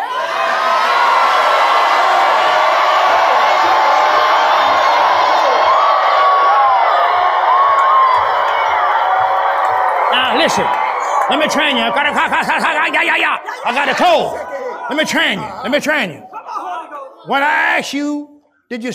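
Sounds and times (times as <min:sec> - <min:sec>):
audience shouting: 0:00.0 - 0:16.3
laughter: 0:10.3 - 0:16.1
speech: 0:10.5 - 0:16.4, 0:17.2 - 0:18.9.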